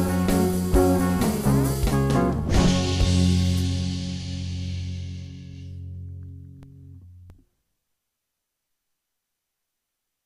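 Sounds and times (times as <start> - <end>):
rock version of a song: 0.0 - 5.8.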